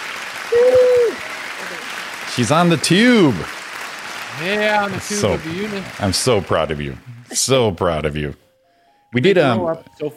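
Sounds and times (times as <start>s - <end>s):
brief applause on a morning show: 0.0s - 7.2s
speech: 2.4s - 3.6s, 4.4s - 8.4s, 9.1s - 10.1s.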